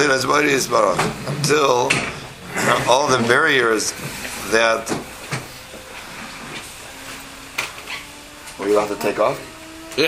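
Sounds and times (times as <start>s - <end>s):
speech: 0.0s - 5.1s, 8.6s - 10.0s
new fancy coffee maker running: 2.4s - 7.2s.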